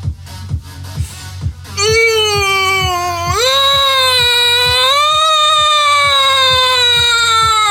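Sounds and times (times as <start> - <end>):
voice imitating a European two-tone ambulance siren: 1.8 - 7.6.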